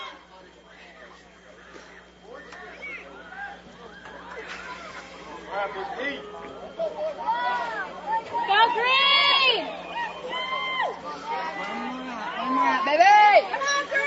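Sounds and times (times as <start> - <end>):
Washington County baseball crowd cheering for final out: 0.0 - 14.0.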